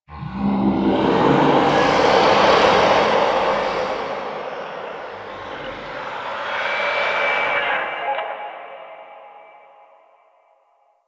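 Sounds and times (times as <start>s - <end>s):
distant infested low drone: 0.1s - 8.0s.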